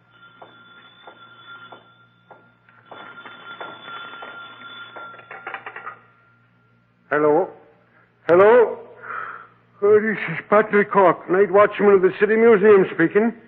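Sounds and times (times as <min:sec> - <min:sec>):
telephone ringing: 0:00.0 - 0:06.4
speech: 0:07.1 - 0:07.6, 0:08.3 - 0:08.5, 0:10.0 - 0:13.4.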